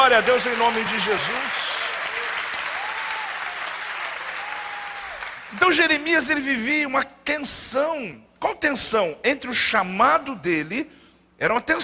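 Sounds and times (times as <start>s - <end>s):
audience applause: 0.0s - 6.0s
speech: 0.1s - 1.6s, 5.5s - 11.8s.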